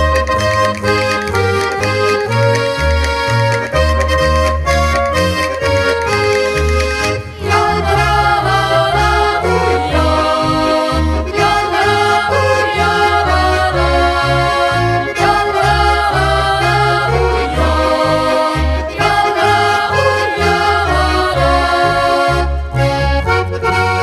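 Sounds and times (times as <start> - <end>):
bass: 0.0 - 24.0.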